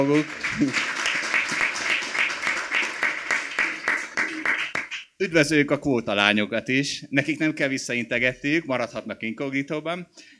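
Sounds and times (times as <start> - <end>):
speech: 0.0 - 0.9, 5.2 - 10.3
crowd clapping: 0.0 - 5.1.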